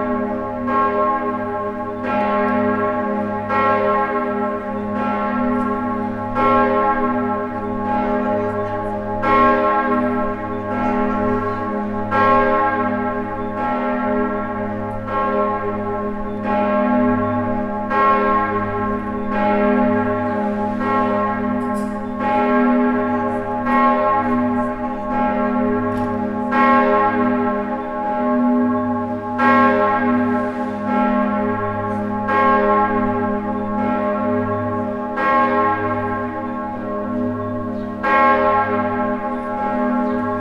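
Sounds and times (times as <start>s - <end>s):
Bern cathedral bell: 0.0s - 40.3s.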